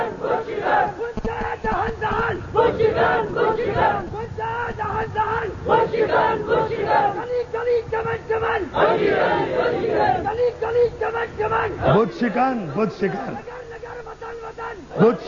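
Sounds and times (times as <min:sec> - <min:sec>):
crowd chanting a slogan: 0:00.0 - 0:15.2.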